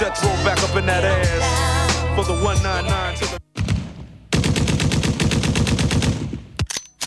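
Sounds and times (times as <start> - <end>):
speech: 0.1 - 3.4
rapid automatic gunfire in a rap track: 4.3 - 6.5.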